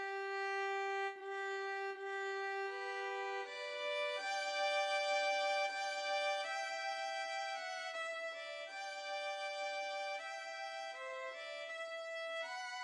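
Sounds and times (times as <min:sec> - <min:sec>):
two violins playing: 0:00.0 - 0:12.8.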